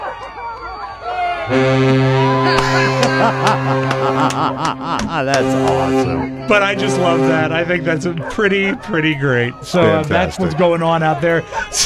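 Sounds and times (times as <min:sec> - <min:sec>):
murmur of crowd chatter: 0:00.0 - 0:11.8
freighter ship horn blast: 0:01.4 - 0:08.6
speech: 0:01.5 - 0:11.8
laughter: 0:02.4 - 0:11.8.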